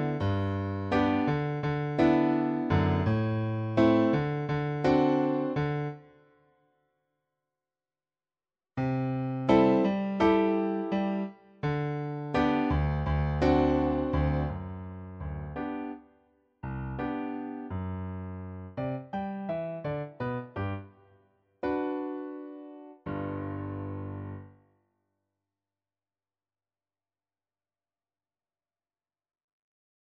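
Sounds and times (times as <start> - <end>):
piano: 0.0 - 6.4, 8.8 - 24.7.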